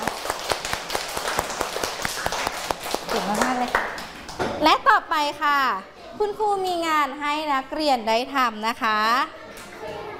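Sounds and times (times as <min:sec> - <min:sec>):
classroom applause for classmates: 0:00.0 - 0:04.5
speech: 0:03.1 - 0:10.0.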